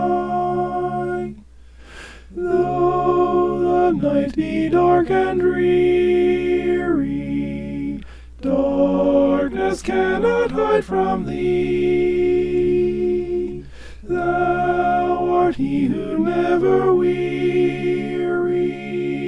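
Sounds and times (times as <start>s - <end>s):
alto voice singing an evening hymn: 0.0s - 1.5s, 2.3s - 19.2s.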